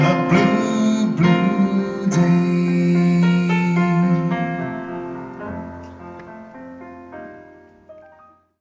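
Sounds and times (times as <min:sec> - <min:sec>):
Slovak man singing: 0:00.0 - 0:05.0.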